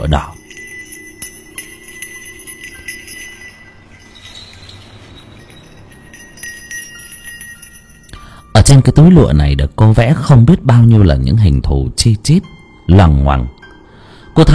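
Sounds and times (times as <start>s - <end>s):
speech: 0.0s - 0.4s, 8.7s - 13.6s, 14.4s - 14.5s
hand bell being shaken: 0.0s - 8.8s.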